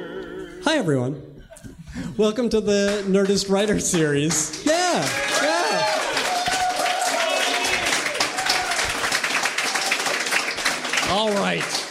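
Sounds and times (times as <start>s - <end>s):
speech: 0.8s - 1.3s, 1.9s - 6.0s
audience applause: 3.7s - 11.8s.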